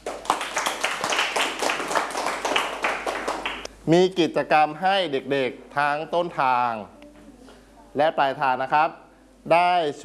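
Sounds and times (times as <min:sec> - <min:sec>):
students clapping in a classroom: 0:00.0 - 0:03.7
speech: 0:03.9 - 0:07.0, 0:07.9 - 0:10.0.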